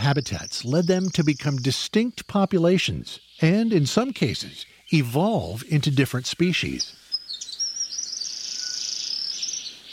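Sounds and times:
speech: 0.0s - 7.0s
Forest Double-collared Sunbird singing: 0.0s - 9.9s.

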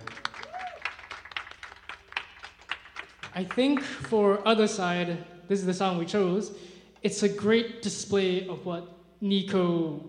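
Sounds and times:
audience at a live gig applauding band members: 0.0s - 4.6s
speech: 3.4s - 10.0s.

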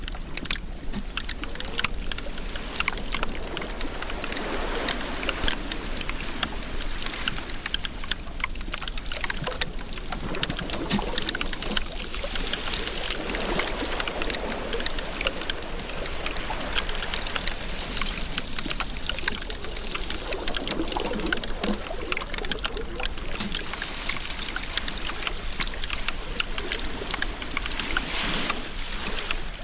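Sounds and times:
glacier meltwater flowing: 0.2s - 29.6s.

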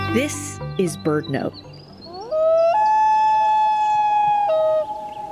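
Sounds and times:
speech: 0.2s - 1.8s
common loon call: 2.1s - 5.2s.

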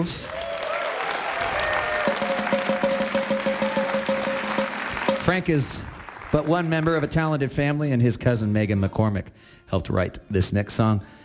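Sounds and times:
speech: 0.0s - 0.5s, 5.3s - 11.2s
audience applause: 0.0s - 7.4s.

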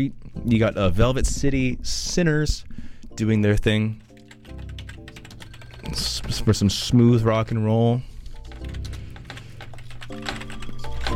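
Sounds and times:
speech: 0.0s - 4.0s, 5.9s - 8.1s
typing on a computer keyboard missing one rubber foot: 4.0s - 6.8s, 8.2s - 11.1s.

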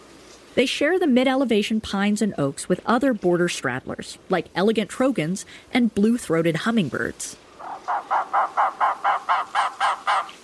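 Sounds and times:
speech: 0.6s - 7.4s
Arizona woodpecker giving harsh squawking calls: 7.6s - 10.4s.

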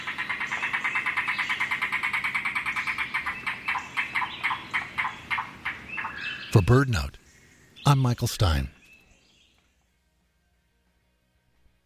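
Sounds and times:
yellow-billed cuckoo (rain crow) calling: 0.0s - 6.8s
speech: 6.6s - 7.2s, 7.9s - 8.8s.

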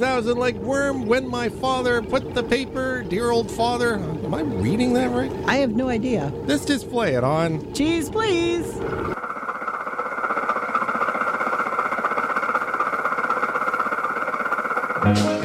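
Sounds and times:
speech: 0.0s - 9.1s, 15.1s - 15.3s
car motor rattling: 0.0s - 15.0s.

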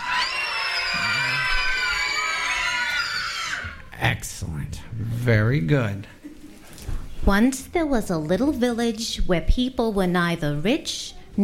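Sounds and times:
crowd of voices, many children, shrieking: 0.0s - 3.9s
speech: 4.2s - 6.2s, 7.2s - 11.4s.

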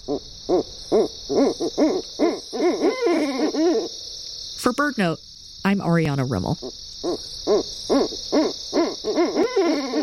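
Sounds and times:
speech: 0.0s - 4.0s, 4.6s - 9.8s
owl hooting: 0.0s - 4.1s, 6.6s - 10.0s.

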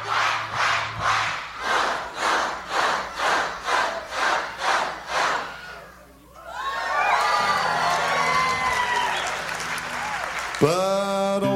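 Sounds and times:
audience clapping and cheering: 0.1s - 11.4s
whoops and shouts: 6.4s - 9.4s.

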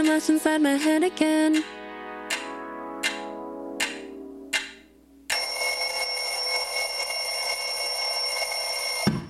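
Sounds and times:
speech: 0.2s - 1.8s
electric bell ringing: 5.3s - 9.1s.

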